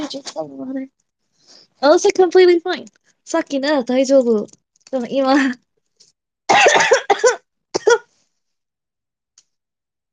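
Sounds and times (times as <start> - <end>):
speech: 0.0 - 5.6, 6.5 - 7.4
person coughing harshly: 6.5 - 8.1.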